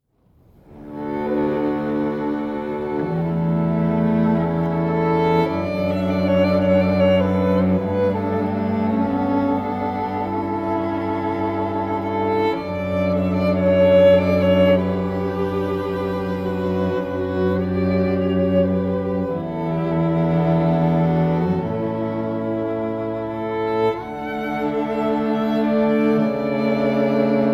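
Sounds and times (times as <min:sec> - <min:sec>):
oboe: 0:00.7 - 0:27.5.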